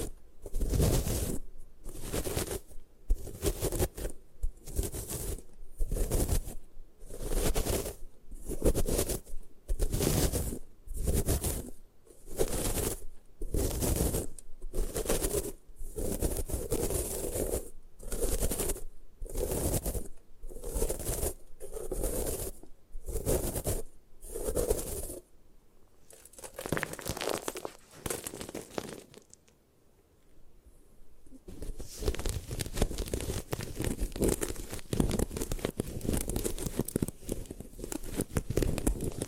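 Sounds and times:
gym chalk being crushed: 0:00.0 - 0:25.2, 0:26.1 - 0:29.5, 0:31.6 - 0:39.2.

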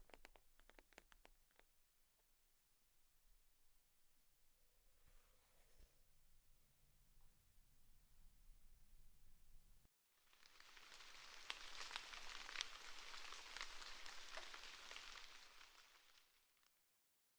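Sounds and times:
sheets of paper crinkling: 0:10.6 - 0:16.6.

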